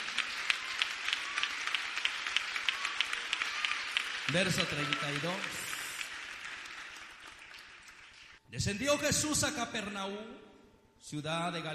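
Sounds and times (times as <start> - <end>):
audience applause: 0.0 - 8.4
speech: 4.3 - 5.7, 8.5 - 11.7.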